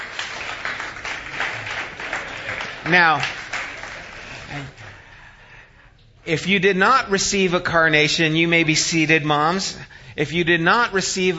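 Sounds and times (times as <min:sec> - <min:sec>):
audience applause: 0:00.0 - 0:05.2
speech: 0:02.9 - 0:03.4, 0:04.5 - 0:04.8, 0:06.3 - 0:11.3.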